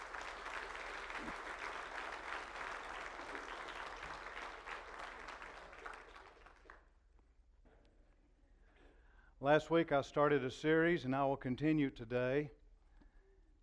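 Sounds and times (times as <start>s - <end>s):
audience applause: 0.0s - 6.8s
speech: 9.4s - 12.6s.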